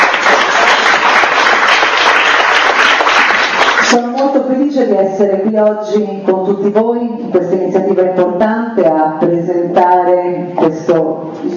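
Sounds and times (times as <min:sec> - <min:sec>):
audience applause: 0:00.0 - 0:04.0
speech: 0:03.9 - 0:11.5.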